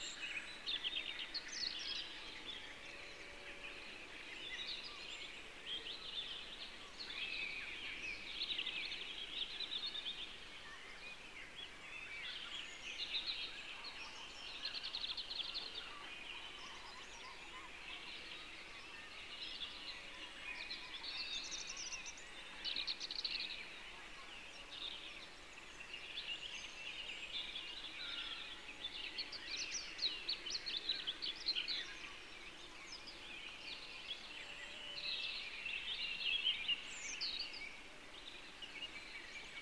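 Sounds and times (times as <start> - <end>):
summer birds: 0.0 - 39.6.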